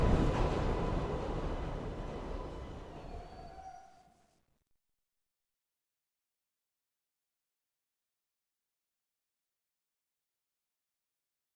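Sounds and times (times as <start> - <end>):
subway train moving: 0.0 - 4.2.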